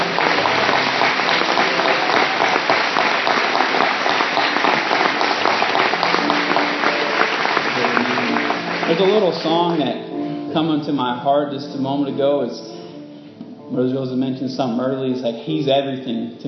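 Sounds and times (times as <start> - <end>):
audience applause: 0.0 - 9.8
speech: 9.0 - 12.7, 13.7 - 16.4.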